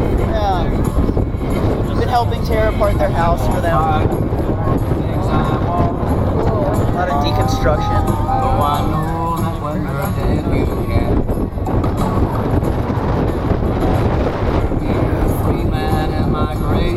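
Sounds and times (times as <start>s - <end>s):
strong wind blowing outdoors: 0.0s - 16.9s
speech: 2.2s - 5.6s, 7.0s - 11.6s.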